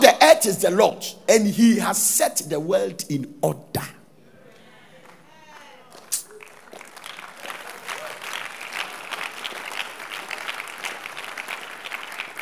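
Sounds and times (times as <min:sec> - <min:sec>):
speech: 0:00.4 - 0:04.0
audience applause: 0:05.0 - 0:12.4.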